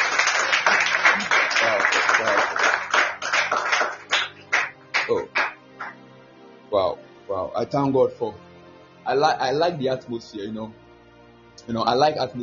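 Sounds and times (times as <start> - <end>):
group of people clapping: 0.0 - 6.0
speech: 7.6 - 10.8, 11.7 - 12.4.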